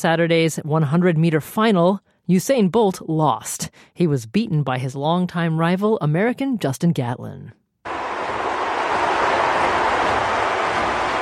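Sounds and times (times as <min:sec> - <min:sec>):
speech: 0:00.0 - 0:07.6
large stadium crowd booing: 0:07.9 - 0:11.2.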